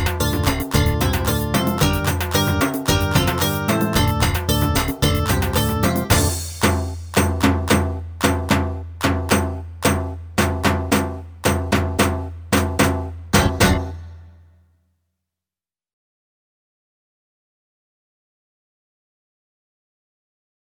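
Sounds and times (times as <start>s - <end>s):
drum solo: 0.0s - 14.3s.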